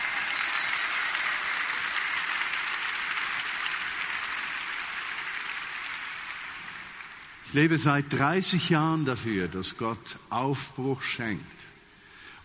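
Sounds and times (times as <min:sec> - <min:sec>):
audience clapping: 0:00.0 - 0:07.8
speech: 0:07.5 - 0:11.7.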